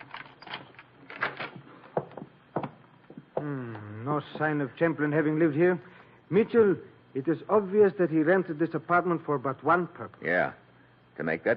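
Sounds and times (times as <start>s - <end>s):
apartment door being unlocked and opened: 0.0s - 1.6s
speech: 3.4s - 10.6s, 11.2s - 11.5s.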